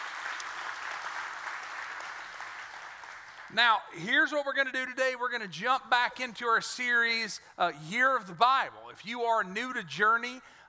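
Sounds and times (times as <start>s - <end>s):
church congregation applauding at a morning service: 0.0s - 3.6s
speech: 3.5s - 10.6s.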